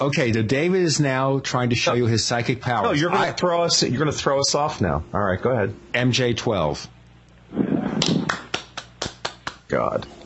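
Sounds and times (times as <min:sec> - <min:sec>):
speech: 0:00.0 - 0:07.6, 0:09.7 - 0:10.2
hand clapping: 0:08.0 - 0:09.7.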